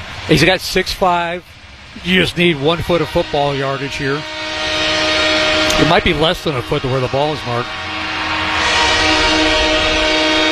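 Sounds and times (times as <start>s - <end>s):
rail noise rumble: 0.0s - 10.4s
speech: 0.3s - 4.4s, 5.8s - 7.8s
train horn blaring: 2.1s - 10.4s.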